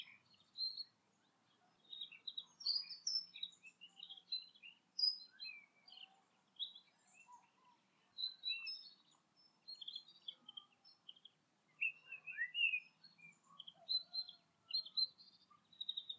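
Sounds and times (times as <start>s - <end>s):
bird chirping: 1.5s - 16.1s.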